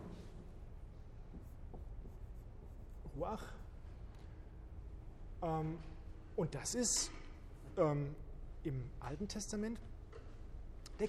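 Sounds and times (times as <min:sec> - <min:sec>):
steady hiss: 0:00.0 - 0:11.0
writing a word on a board during a lecture: 0:01.3 - 0:03.2
speech: 0:03.2 - 0:03.6, 0:05.4 - 0:10.0.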